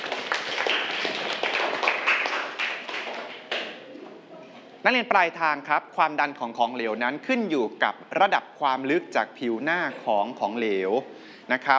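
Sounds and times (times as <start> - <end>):
students clapping: 0.0 - 3.8
speech: 4.8 - 11.7.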